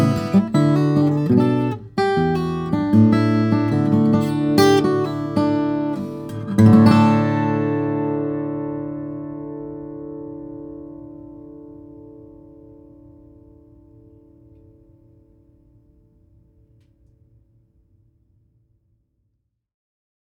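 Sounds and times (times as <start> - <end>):
1937 Martin 00-18 flattop steel string guitar of mahogany and Adirondack spruce: 0.0 - 14.3.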